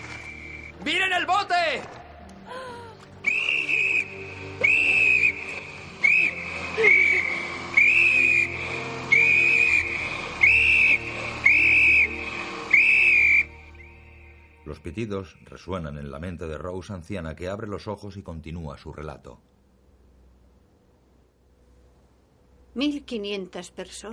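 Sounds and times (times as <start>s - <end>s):
shaky whistle blowing: 0.0s - 0.8s, 3.2s - 14.6s
speech: 0.8s - 2.6s, 15.0s - 19.5s, 22.8s - 24.1s.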